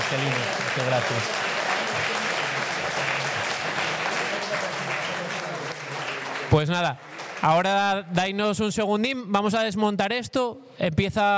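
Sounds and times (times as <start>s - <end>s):
audience applause: 0.0s - 7.9s
speech: 0.1s - 2.3s, 6.5s - 11.3s.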